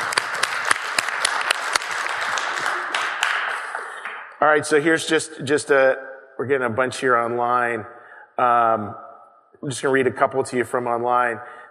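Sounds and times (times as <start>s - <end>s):
audience applause: 0.0s - 4.2s
speech: 4.4s - 9.0s, 9.6s - 11.6s.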